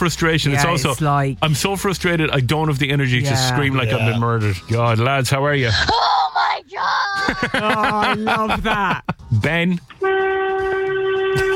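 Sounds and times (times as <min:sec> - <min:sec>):
speech: 0:00.0 - 0:10.2
laughter: 0:07.1 - 0:09.3
horn honking: 0:09.8 - 0:11.5.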